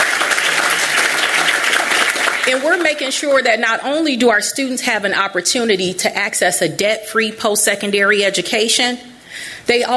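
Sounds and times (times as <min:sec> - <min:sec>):
audience applause for kids: 0:00.0 - 0:02.9
speech: 0:02.5 - 0:09.9.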